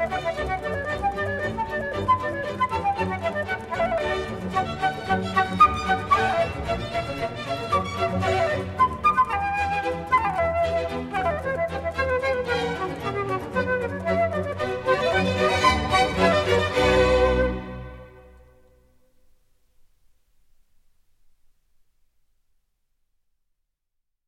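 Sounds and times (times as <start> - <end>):
orchestral suite in B minor: 0.0 - 18.8.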